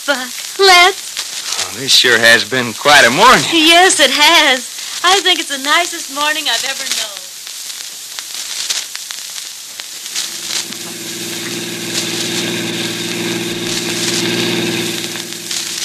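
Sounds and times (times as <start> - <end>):
speech: 0.1 - 1.1, 1.7 - 7.1
car engine running: 10.2 - 15.8.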